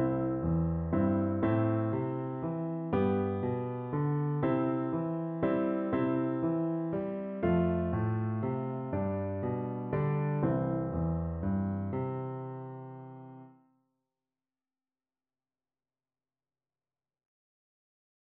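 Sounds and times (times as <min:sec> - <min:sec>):
piano duet: 0:00.0 - 0:13.6.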